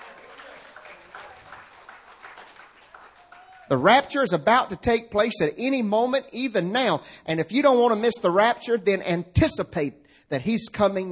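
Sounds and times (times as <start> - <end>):
audience clapping: 0.0 - 3.9
speech: 3.7 - 11.1.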